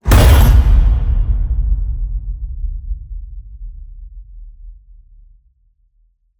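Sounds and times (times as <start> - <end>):
cinematic metal crash hit: 0.0 - 2.7.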